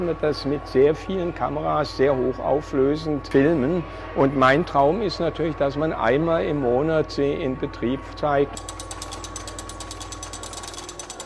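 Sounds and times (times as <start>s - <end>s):
speech: 0.0s - 8.8s
low mechanical hum: 0.0s - 11.2s
hand-cranked mechanical calculating machine clattering: 8.6s - 11.2s.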